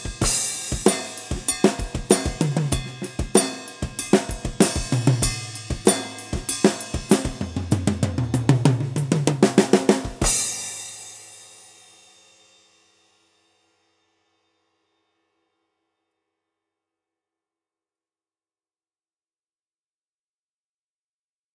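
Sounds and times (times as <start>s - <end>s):
Millenium studio drum kit effects: 0.0s - 11.3s.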